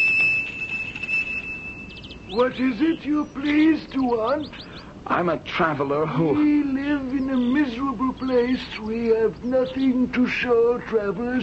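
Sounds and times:
gate bell rung by pulling cord: 0:00.0 - 0:02.8
speech: 0:02.3 - 0:11.4.

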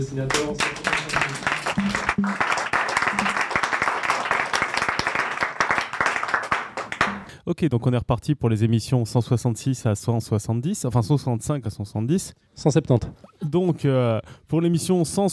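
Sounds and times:
speech: 0:00.0 - 0:03.3, 0:07.5 - 0:15.3
applause: 0:00.0 - 0:07.3.

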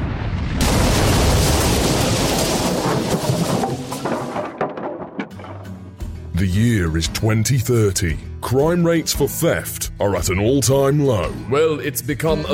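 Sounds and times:
cannon fire from a Royal Navy ship: 0:00.0 - 0:04.4
speech: 0:06.4 - 0:12.5.

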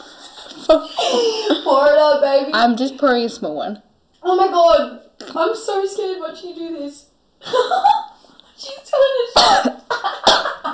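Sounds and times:
speech: 0:00.7 - 0:08.0
person coughing after a spicy whisky shot: 0:09.4 - 0:10.7.

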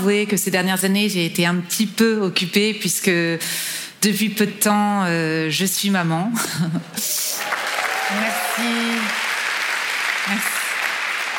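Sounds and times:
speech: 0:00.0 - 0:07.2, 0:08.1 - 0:09.2, 0:10.3 - 0:10.5
lukewarm audience applause at a live stage performance: 0:07.1 - 0:11.3.

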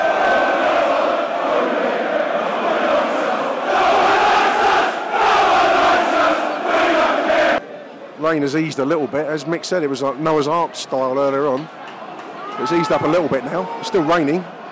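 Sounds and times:
football crowd chanting: 0:00.0 - 0:08.0
football stadium crowd roaring: 0:00.0 - 0:14.7
speech: 0:08.3 - 0:11.8, 0:12.6 - 0:14.7.

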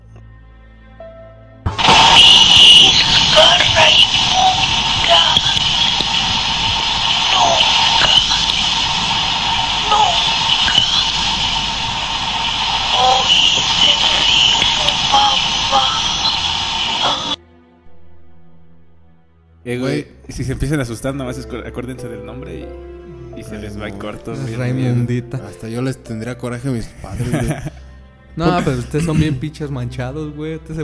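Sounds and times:
hissing static in a psychophony recording: 0:01.7 - 0:17.4
speech: 0:19.7 - 0:27.8, 0:28.4 - 0:30.8
laughter: 0:27.0 - 0:27.8, 0:28.5 - 0:29.4.

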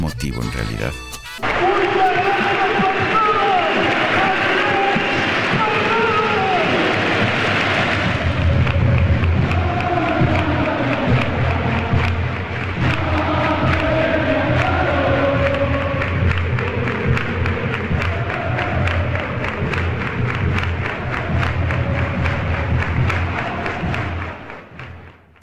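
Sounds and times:
speech: 0:00.1 - 0:04.6
stadium fans chanting a song: 0:01.4 - 0:24.6.

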